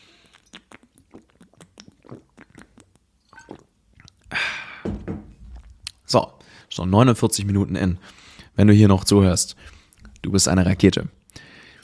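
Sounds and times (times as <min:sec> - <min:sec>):
person drinking a sip of water: 0:00.0 - 0:04.7, 0:05.4 - 0:06.1, 0:09.6 - 0:10.3
speech: 0:06.1 - 0:11.2.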